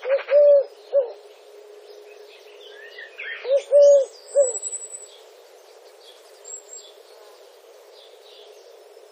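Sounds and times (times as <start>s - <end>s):
Streptopelia decaocto Eurasian collared dove cooing: 0.0s - 1.3s, 3.1s - 4.7s.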